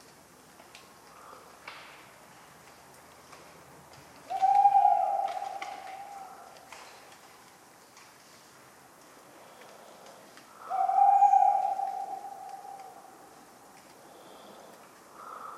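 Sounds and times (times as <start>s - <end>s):
tawny owl hooting: 4.3s - 6.7s, 10.5s - 13.4s.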